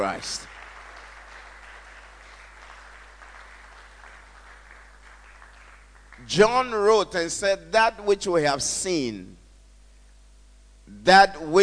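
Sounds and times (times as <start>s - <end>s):
speech: 0.0s - 0.5s, 6.3s - 9.4s, 11.0s - 11.6s
audience clapping: 0.0s - 6.4s.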